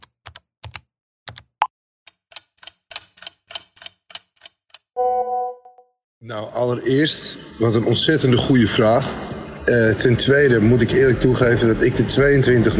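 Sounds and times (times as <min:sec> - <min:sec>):
typing a text message: 0:00.0 - 0:04.9
speech: 0:06.2 - 0:12.7.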